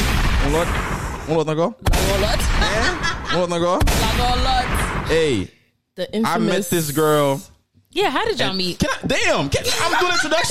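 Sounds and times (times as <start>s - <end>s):
bomb explosion sound effect: 0.0s - 5.5s
speech: 0.4s - 10.5s
laughter: 2.6s - 3.8s, 9.5s - 10.5s.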